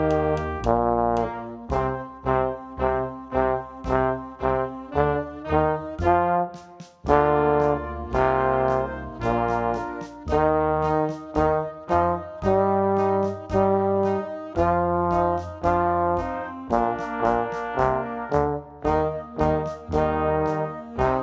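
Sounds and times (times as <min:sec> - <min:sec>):
loud trombone playing a march: 0:00.0 - 0:21.2.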